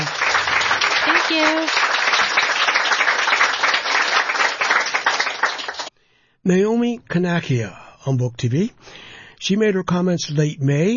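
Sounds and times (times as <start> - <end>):
audience applause: 0.0 - 5.9
speech: 1.3 - 1.8, 6.4 - 10.9.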